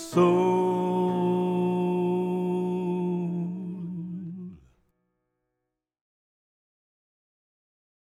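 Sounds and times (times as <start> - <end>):
woman singing tenor: 0.0 - 4.6.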